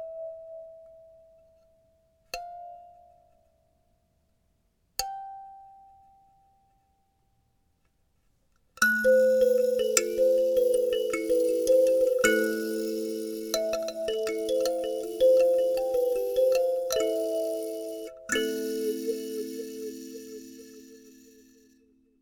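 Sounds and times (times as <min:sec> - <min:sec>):
kalimba playing in A minor: 0:08.8 - 0:21.6.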